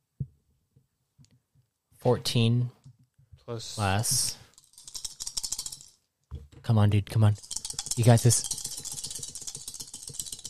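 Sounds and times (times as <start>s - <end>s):
speech: 2.0s - 2.8s, 3.5s - 4.4s, 6.7s - 8.6s
dice shaken in a hand or cup: 4.5s - 6.0s, 7.4s - 10.4s.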